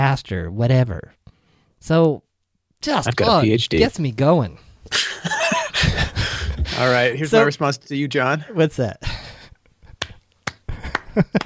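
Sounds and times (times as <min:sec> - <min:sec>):
speech: 0:00.0 - 0:01.2, 0:01.8 - 0:02.2, 0:02.8 - 0:05.9, 0:06.8 - 0:09.2, 0:11.2 - 0:11.4
laughter: 0:04.9 - 0:07.5, 0:10.7 - 0:11.4
hand claps: 0:09.9 - 0:11.4.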